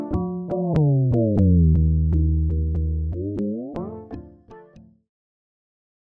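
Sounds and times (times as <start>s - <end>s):
Rossum Electro Music Morpheus tam to bell wah synthesizer sound: 0.2s - 4.1s.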